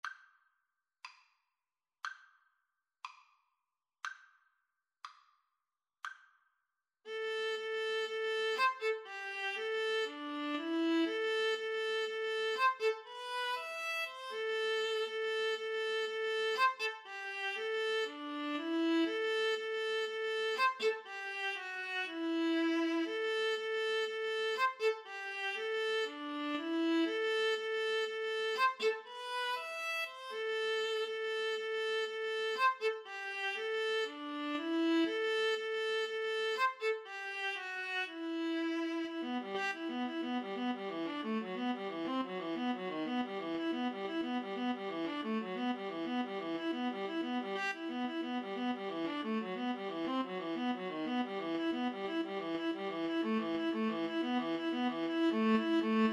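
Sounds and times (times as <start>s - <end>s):
cello: 7.1s - 56.1s
viola: 7.1s - 56.1s.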